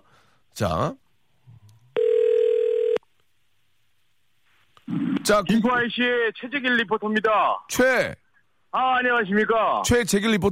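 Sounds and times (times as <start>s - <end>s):
speech: 0.6s - 1.0s, 4.9s - 10.5s
telephone tone: 2.0s - 3.0s.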